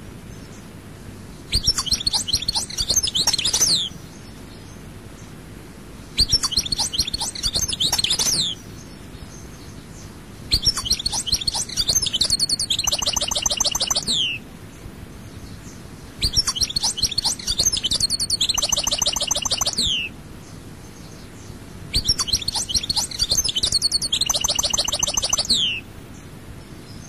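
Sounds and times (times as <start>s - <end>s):
European goldfinch twittering song: 1.5s - 4.0s, 6.2s - 8.6s, 10.5s - 14.4s, 16.2s - 20.1s, 21.9s - 25.8s.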